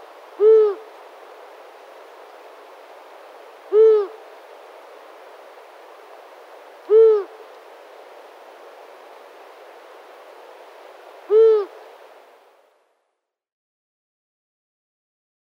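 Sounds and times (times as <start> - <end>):
Long-eared owl giving low short hoots: 0.4 - 0.9, 3.7 - 4.2, 6.8 - 7.5, 11.3 - 11.9.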